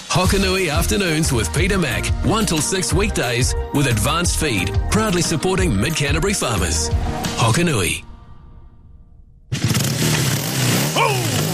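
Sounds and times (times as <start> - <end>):
speech: 0.1 - 8.1
motorcycle engine running after repair: 9.5 - 11.5.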